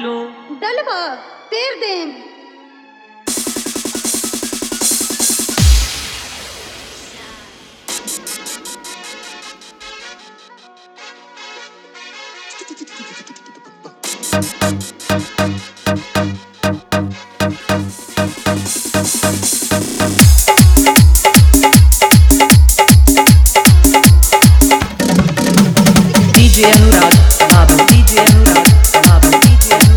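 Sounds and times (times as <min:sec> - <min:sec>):
desi dholak bass dance mix: 0:03.3 - 0:06.1, 0:07.9 - 0:09.5, 0:14.1 - 0:29.9.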